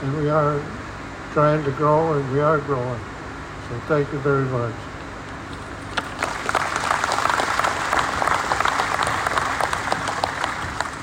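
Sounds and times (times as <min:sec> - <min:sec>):
speech: 0:00.3 - 0:03.1, 0:03.7 - 0:04.9
crowd applauding: 0:06.0 - 0:11.0.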